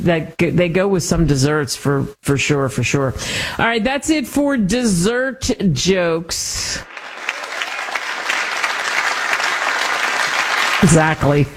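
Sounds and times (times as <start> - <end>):
speech: 0.0 - 7.0, 10.8 - 11.5
crowd applause: 6.8 - 11.5.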